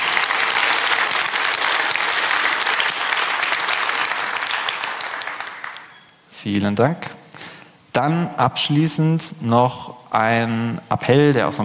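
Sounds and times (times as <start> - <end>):
audience clapping: 0.0 - 6.0
speech: 6.4 - 7.2, 8.0 - 11.6.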